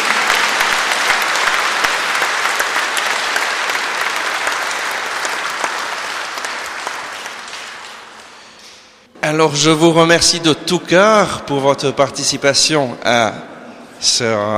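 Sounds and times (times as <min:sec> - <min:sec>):
audience applause: 0:00.0 - 0:08.6
speech: 0:09.3 - 0:14.5.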